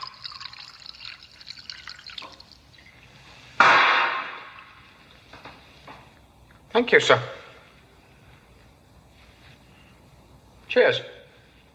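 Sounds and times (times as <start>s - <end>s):
louder splash of pouring liquid: 0.0s - 3.2s
wine trickling into a glass: 0.0s - 3.2s
speech: 6.8s - 7.4s, 10.8s - 11.1s.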